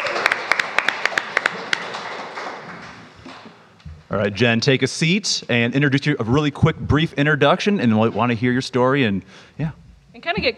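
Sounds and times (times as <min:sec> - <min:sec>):
audience clapping: 0:00.0 - 0:03.7
speech: 0:04.1 - 0:10.5.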